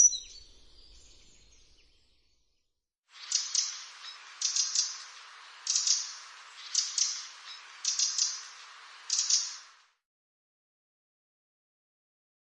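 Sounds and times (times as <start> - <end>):
Eurasian wren singing: 3.2 - 9.8.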